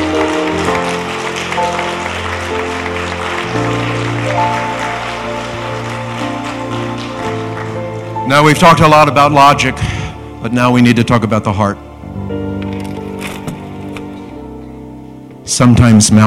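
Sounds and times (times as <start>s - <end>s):
audience clapping along: 0.0s - 9.1s
speech: 8.3s - 11.8s, 15.5s - 16.2s.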